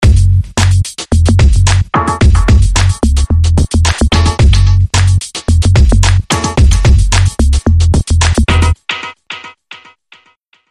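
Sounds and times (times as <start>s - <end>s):
funk tech bass: 0.0s - 8.8s.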